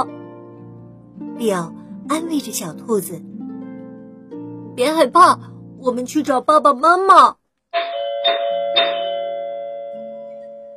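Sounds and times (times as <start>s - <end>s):
speech: 1.4s - 3.3s, 4.8s - 7.9s
doorbell ringing: 7.8s - 10.7s.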